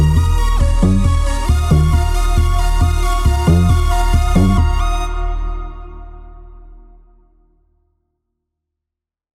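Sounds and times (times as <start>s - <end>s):
driven synths: 0.0s - 7.4s.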